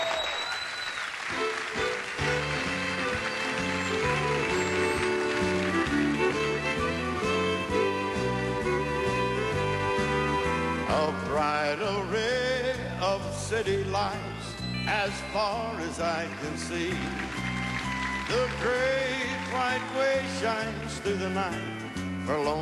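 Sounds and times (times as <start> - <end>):
audience applause: 0.0 - 7.4, 16.2 - 20.4
band playing with a steady bass rhythm: 1.2 - 22.5
speech: 13.1 - 14.3, 14.9 - 17.2, 18.3 - 21.7, 22.3 - 22.5.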